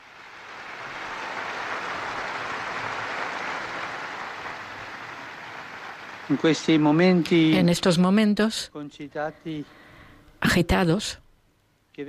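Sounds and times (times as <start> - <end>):
crowd applause for newly beatified person: 0.0 - 7.5
speech: 6.3 - 9.8, 10.6 - 11.2.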